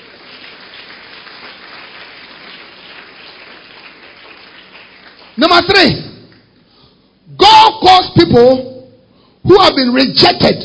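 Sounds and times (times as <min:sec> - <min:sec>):
audience clapping applause: 0:00.0 - 0:06.6
speech: 0:05.4 - 0:06.1, 0:07.9 - 0:08.7, 0:09.4 - 0:10.6.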